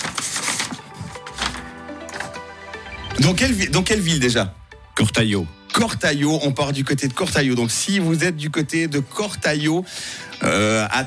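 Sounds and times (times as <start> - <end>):
paper envelope being opened: 0.0 - 1.7
speech: 3.2 - 11.0.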